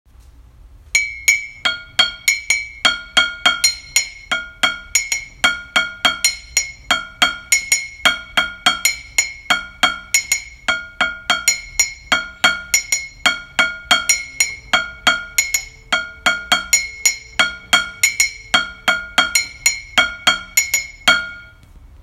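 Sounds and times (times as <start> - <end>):
teacups played as percussion: 1.0 - 21.6.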